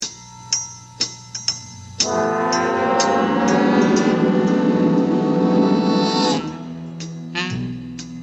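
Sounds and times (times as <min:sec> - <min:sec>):
Greek intro music: 0:02.0 - 0:07.9.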